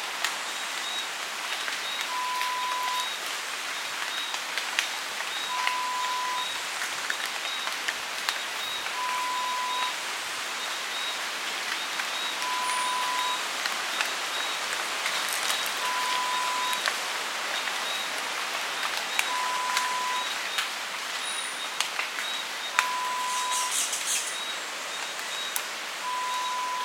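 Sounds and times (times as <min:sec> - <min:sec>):
rainforest ambience: 0:00.0 - 0:26.8.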